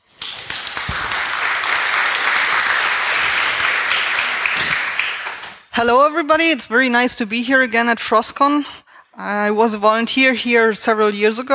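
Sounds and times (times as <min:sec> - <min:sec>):
audience applause: 0:00.0 - 0:05.7
speech: 0:05.8 - 0:11.5.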